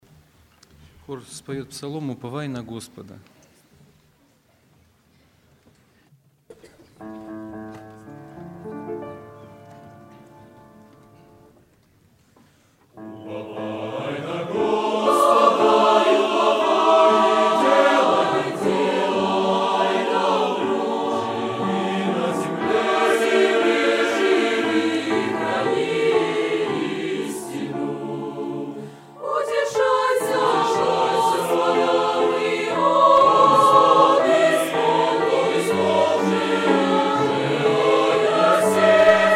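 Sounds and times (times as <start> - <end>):
choir singing: 13.0 - 39.3.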